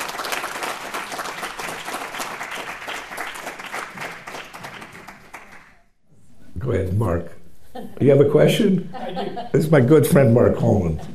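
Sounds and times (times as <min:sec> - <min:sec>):
audience applause: 0:00.0 - 0:05.9
speech: 0:06.6 - 0:11.1
laughter: 0:07.6 - 0:08.0, 0:08.6 - 0:09.9, 0:10.7 - 0:11.1.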